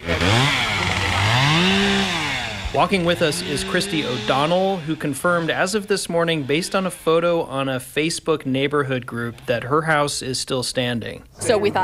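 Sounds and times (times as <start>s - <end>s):
chainsaw run by a fire crew member putting out hot spots: 0.0s - 8.6s
speech: 2.8s - 11.8s.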